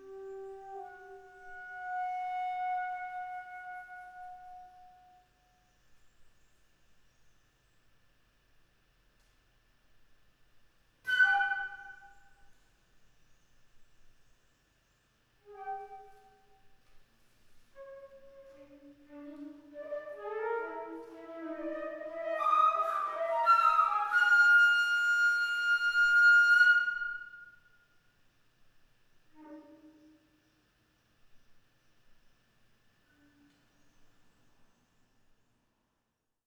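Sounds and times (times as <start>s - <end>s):
flute: 0.0s - 5.2s, 11.1s - 12.4s, 15.5s - 16.5s, 17.8s - 27.6s.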